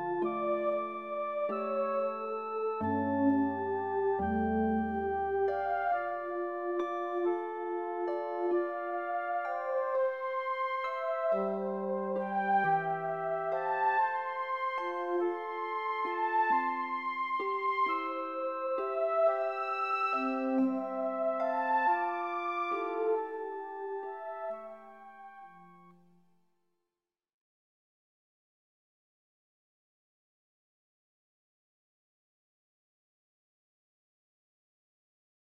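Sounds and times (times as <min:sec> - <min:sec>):
chord progression: 0:00.0 - 0:25.9.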